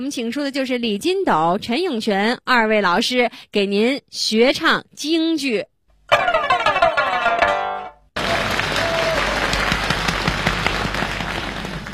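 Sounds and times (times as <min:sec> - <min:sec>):
speech: 0:00.0 - 0:06.5
harmonic musical passage: 0:06.1 - 0:08.1
audience applause at a Beijing crosstalk comedy show: 0:08.2 - 0:11.9.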